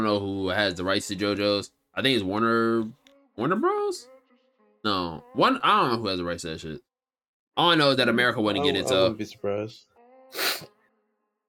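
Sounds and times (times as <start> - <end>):
speech: 0.0 - 4.1, 4.8 - 6.9, 7.6 - 10.7
sniffing close to the microphone: 10.3 - 10.7.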